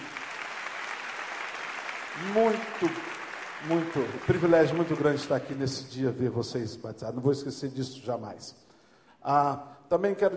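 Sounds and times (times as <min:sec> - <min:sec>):
round of applause: 0:00.0 - 0:06.0
speech: 0:02.2 - 0:08.6, 0:09.2 - 0:10.3.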